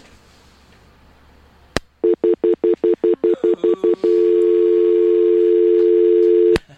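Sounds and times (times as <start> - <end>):
telephone line beeps and tone after a failed call-in: 2.0 - 6.6
telephone line click after a failed call-in: 5.3 - 6.6.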